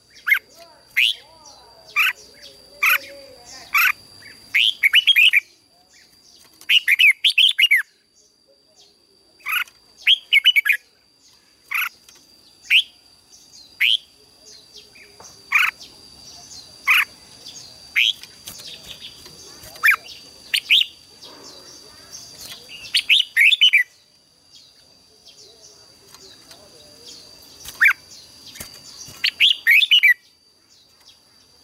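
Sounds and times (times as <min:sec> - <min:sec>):
red-whiskered bulbul singing: 0:00.0 - 0:31.6.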